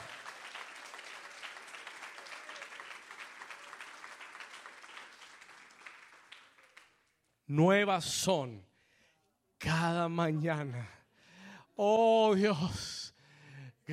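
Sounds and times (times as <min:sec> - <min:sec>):
audience applause: 0:00.0 - 0:07.1
speech: 0:07.5 - 0:08.7, 0:09.8 - 0:11.0, 0:11.8 - 0:13.0.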